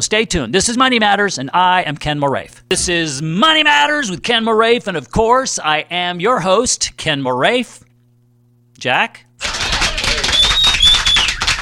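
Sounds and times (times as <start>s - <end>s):
speech: 0.0s - 7.8s, 8.8s - 9.6s
crowd applause: 9.4s - 11.6s
high whistle-like tone: 10.2s - 11.4s.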